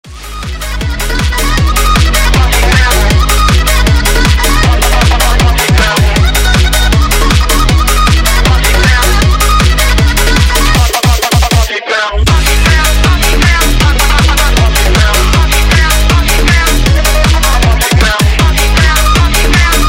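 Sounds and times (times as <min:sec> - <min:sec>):
phonk music: 0:00.0 - 0:19.8.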